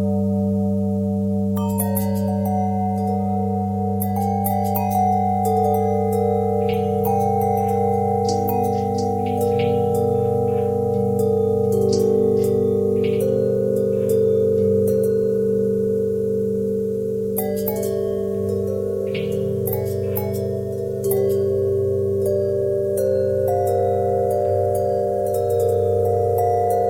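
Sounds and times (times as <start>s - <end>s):
long bell with pitch bend twist: 0.0s - 26.8s.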